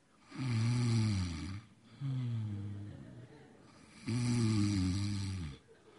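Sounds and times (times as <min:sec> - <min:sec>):
person imitating snoring: 0:00.3 - 0:02.9, 0:03.9 - 0:05.6.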